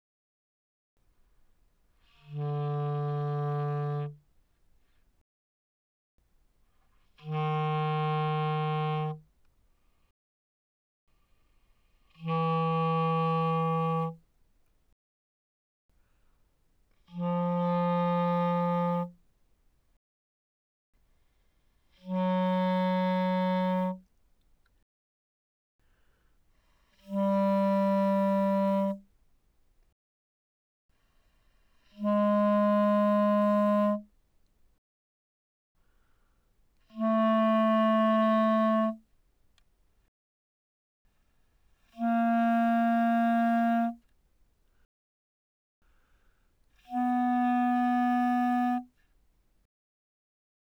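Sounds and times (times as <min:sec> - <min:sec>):
B-flat clarinet notes mezzo forte D3 to B3: 0:02.0 - 0:04.2, 0:07.2 - 0:09.2, 0:12.2 - 0:14.2, 0:17.1 - 0:19.2, 0:22.0 - 0:24.0, 0:27.0 - 0:29.0, 0:31.9 - 0:34.1, 0:36.9 - 0:39.0, 0:41.9 - 0:44.0, 0:46.8 - 0:48.9.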